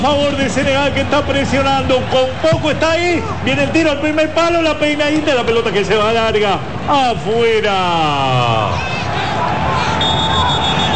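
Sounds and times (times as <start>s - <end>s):
speech: 0.0s - 9.6s
football match crowd noise: 0.0s - 10.9s
referee's whistle signalling a drinks break in a football match: 9.7s - 10.9s.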